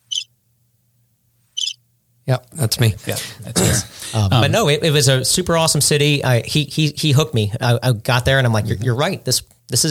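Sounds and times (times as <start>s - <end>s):
crickets chirping sound effect: 0.0s - 0.3s, 1.6s - 1.8s
speech: 2.3s - 9.8s.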